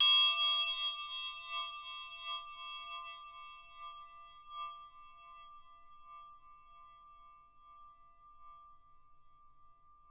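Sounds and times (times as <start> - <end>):
triangle percussion panned right: 0.0 - 2.2.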